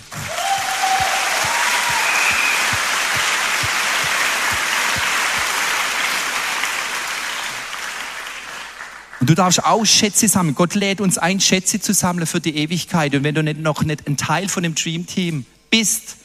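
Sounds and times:
audience applause: 0.0s - 9.3s
speech: 9.3s - 16.2s.

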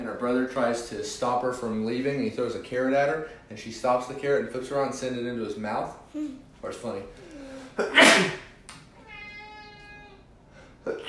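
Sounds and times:
speech: 0.2s - 7.2s, 7.8s - 8.4s
person sneezing: 7.5s - 8.6s, 10.9s - 11.0s.

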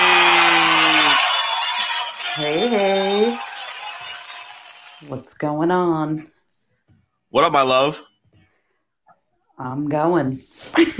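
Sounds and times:
audience applause: 0.0s - 5.2s
speech: 2.4s - 3.5s, 5.0s - 6.4s, 7.3s - 8.1s, 9.6s - 10.9s.

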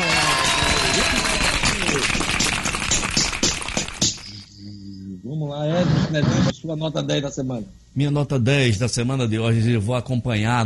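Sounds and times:
applause sound effect: 0.0s - 4.2s
speech: 6.1s - 10.6s.

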